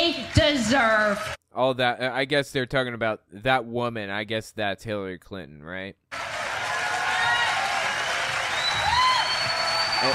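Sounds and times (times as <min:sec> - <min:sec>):
speech: 0:00.1 - 0:06.4
church crowd clapping: 0:06.1 - 0:10.1.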